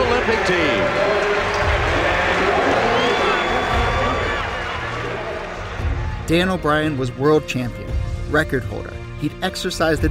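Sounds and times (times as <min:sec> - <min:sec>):
large stadium crowd cheering: 0:00.0 - 0:07.0
speech: 0:00.5 - 0:00.8, 0:06.3 - 0:10.1
whistles: 0:02.7 - 0:04.5.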